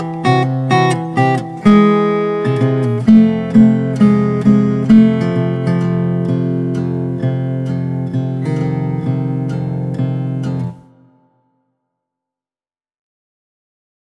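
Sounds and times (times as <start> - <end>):
easy boogie-woogie solo guitar: 0.0 - 10.8.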